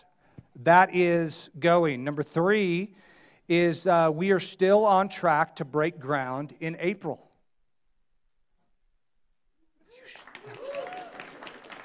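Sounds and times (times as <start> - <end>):
speech: 0.6 - 7.3
quiet audience applause: 9.9 - 11.8.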